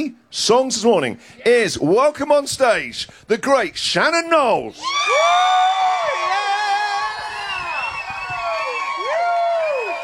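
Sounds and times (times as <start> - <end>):
speech: 0.0 - 6.4
audience applause and cheering: 4.8 - 10.0.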